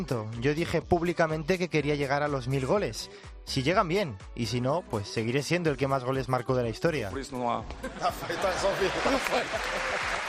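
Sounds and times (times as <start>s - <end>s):
speech: 0.0s - 10.2s
laughter: 7.7s - 10.2s
crowd ovation applause: 8.3s - 10.2s.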